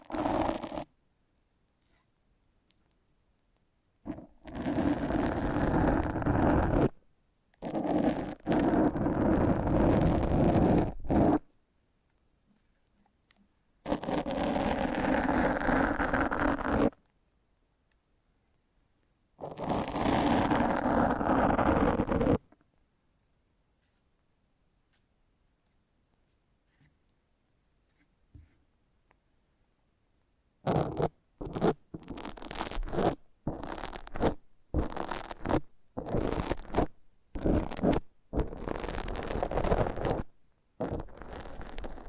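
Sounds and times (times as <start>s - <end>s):
foam being rubbed and squeezed: 0.0s - 0.9s, 4.1s - 7.0s, 7.6s - 11.5s, 13.8s - 17.0s, 19.4s - 22.5s, 30.6s - 42.0s.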